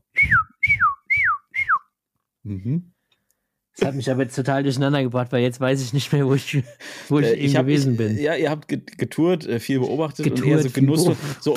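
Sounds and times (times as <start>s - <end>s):
shrill marmot whistles: 0.2s - 1.9s
speech: 2.5s - 3.0s, 3.8s - 11.5s
laughter: 9.8s - 11.5s.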